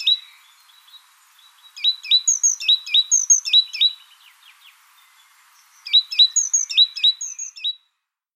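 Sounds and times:
great tit Parus major giving quick high clipped notes: 0.0s - 7.8s.

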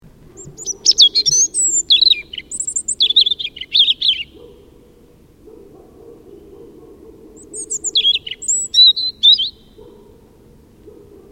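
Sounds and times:
European robin singing: 0.3s - 5.1s, 6.2s - 10.2s.

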